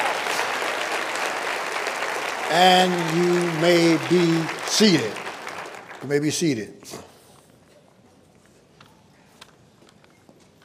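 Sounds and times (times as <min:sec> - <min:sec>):
audience clapping: 0:00.0 - 0:06.6
speech: 0:02.5 - 0:05.2, 0:06.0 - 0:07.1.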